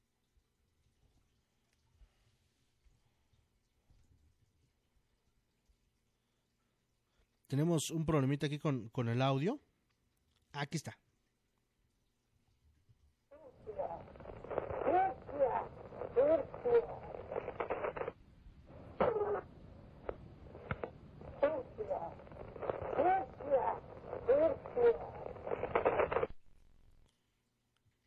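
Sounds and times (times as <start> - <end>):
speech: 7.5 - 9.7, 10.5 - 11.0
psychophony recording of a purported ghost voice: 13.4 - 18.1, 18.7 - 26.3.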